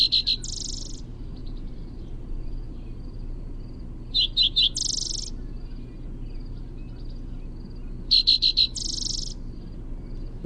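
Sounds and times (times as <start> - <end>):
spotted towhee primary song: 0.0 - 10.4.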